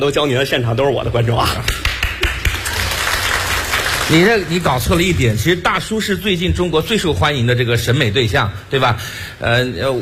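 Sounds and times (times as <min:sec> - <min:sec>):
speech: 0:00.0 - 0:01.9, 0:04.1 - 0:10.0
audience applause in a radio studio: 0:01.8 - 0:05.1.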